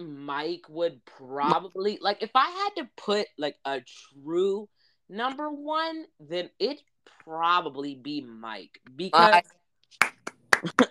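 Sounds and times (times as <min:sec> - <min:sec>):
speech: 0:00.0 - 0:10.8
hand clapping: 0:10.0 - 0:10.8.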